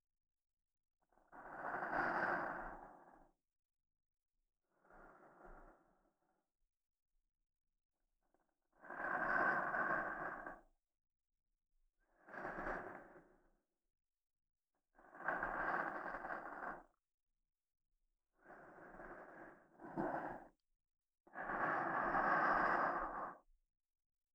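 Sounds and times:
soft sleep-inducing voice in right channel: 0:01.2 - 0:03.4, 0:04.7 - 0:06.3, 0:08.7 - 0:10.7, 0:15.0 - 0:17.0, 0:18.4 - 0:20.6, 0:21.3 - 0:23.6.

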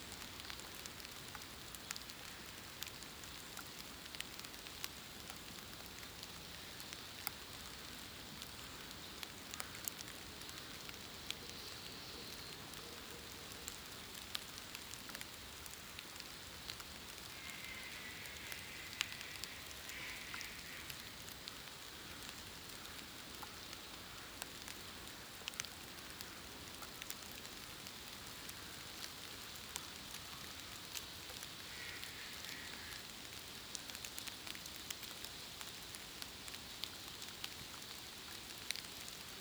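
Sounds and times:
rain in a forest: 0:00.0 - 0:39.3.

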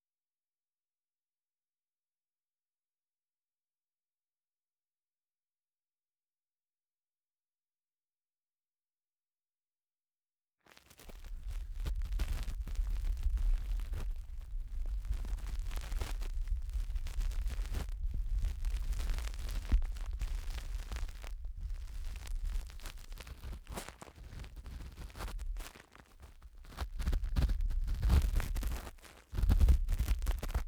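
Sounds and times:
ear cleaning in the left ear: 0:10.9 - 0:30.6.

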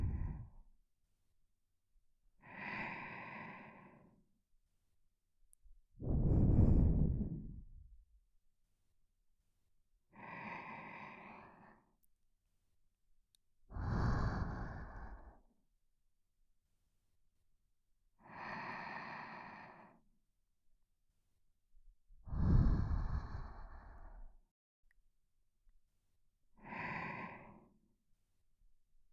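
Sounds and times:
person breathing in sleep: 0:00.0 - 0:00.6, 0:02.4 - 0:04.2, 0:06.0 - 0:07.8, 0:10.2 - 0:11.9, 0:13.7 - 0:15.4, 0:18.2 - 0:20.0, 0:22.3 - 0:24.4, 0:26.6 - 0:27.8.

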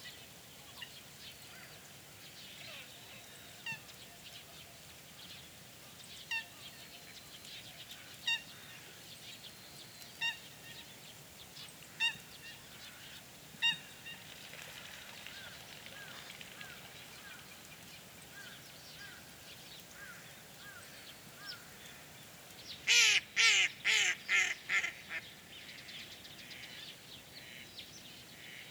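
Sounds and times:
various birds calling in a swamp: 0:11.9 - 0:26.8.

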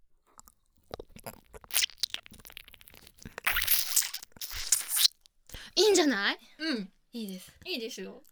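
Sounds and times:
wet ASMR licking sounds: 0:00.3 - 0:06.2
speech: 0:05.9 - 0:08.3.

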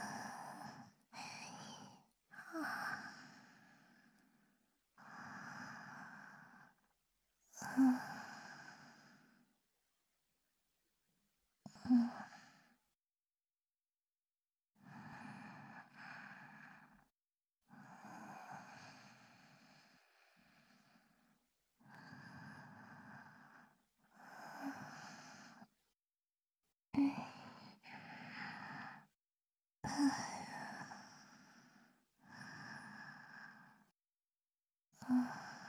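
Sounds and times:
breath loop on left recorded with binaural microphone: 0:00.0 - 0:06.9, 0:07.6 - 0:09.5, 0:14.8 - 0:17.1, 0:17.8 - 0:25.7, 0:27.0 - 0:29.2, 0:29.9 - 0:33.9, 0:35.0 - 0:35.6.

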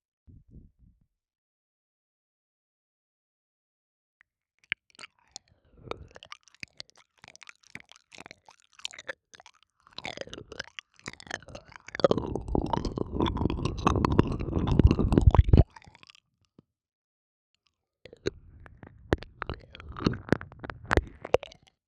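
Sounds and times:
cat-girl ear licking sounds: 0:04.7 - 0:16.1, 0:18.1 - 0:21.7.

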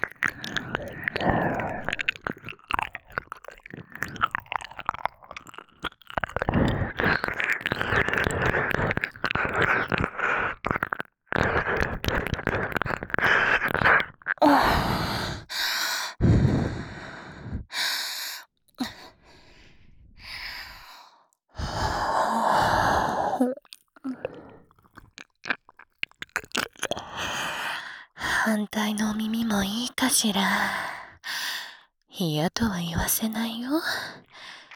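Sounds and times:
succubus older-sister woman's erotic voice: 0:00.0 - 0:02.4, 0:06.3 - 0:24.8, 0:26.7 - 0:34.7
ear licking: 0:00.0 - 0:15.5, 0:21.7 - 0:27.6, 0:34.2 - 0:34.7.

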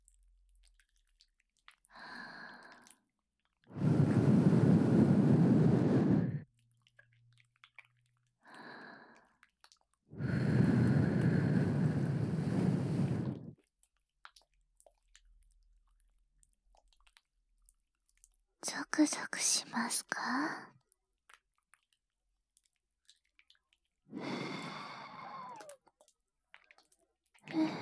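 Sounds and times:
soft breathy blowing into the listener's ears: 0:03.7 - 0:06.4, 0:10.2 - 0:13.6, 0:24.1 - 0:25.8, 0:27.5 - 0:27.7
speech: 0:18.7 - 0:20.8.

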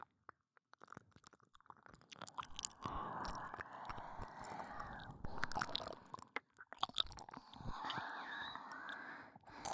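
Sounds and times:
nurse licking and kissing sounds: 0:02.2 - 0:09.7.

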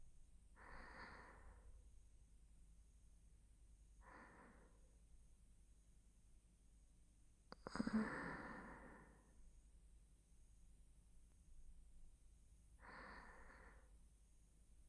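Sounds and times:
person breathing in sleep on the right side: 0:00.6 - 0:01.7, 0:04.0 - 0:04.8, 0:07.7 - 0:09.3, 0:12.8 - 0:13.9.

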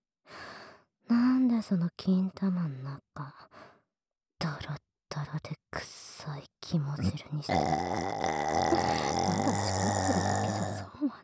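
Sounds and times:
speech: 0:01.6 - 0:03.7, 0:05.3 - 0:10.3, 0:11.0 - 0:11.2
low croaky burp: 0:07.0 - 0:10.9.

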